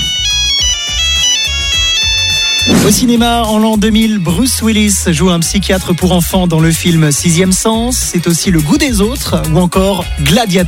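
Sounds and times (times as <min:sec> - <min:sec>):
mobile phone ringtone melody: 0:00.0 - 0:03.7
low thumps: 0:02.3 - 0:04.1
speech: 0:02.9 - 0:10.6.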